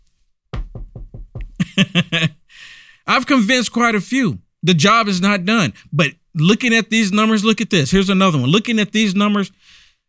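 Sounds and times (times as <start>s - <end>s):
knocking on wood: 0.6s - 1.7s
speech: 1.8s - 2.4s, 3.1s - 9.8s.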